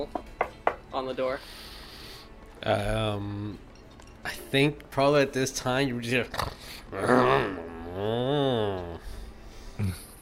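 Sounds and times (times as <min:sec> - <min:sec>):
speech: 0:00.0 - 0:00.2, 0:01.0 - 0:01.8, 0:02.6 - 0:09.0
voice imitating snoring: 0:06.4 - 0:09.1.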